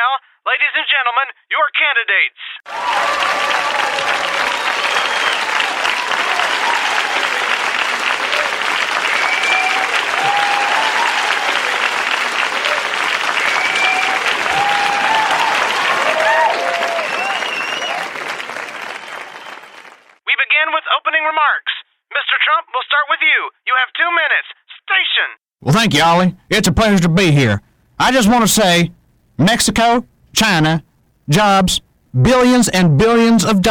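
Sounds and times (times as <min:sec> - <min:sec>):
speech: 0:00.5 - 0:06.7, 0:20.6 - 0:33.6
applause from a large audience: 0:02.7 - 0:20.2.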